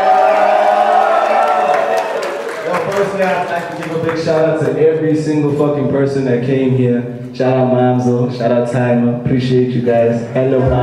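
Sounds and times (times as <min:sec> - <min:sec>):
audience cheering and clapping: 0:00.0 - 0:04.7
speech: 0:03.1 - 0:10.8.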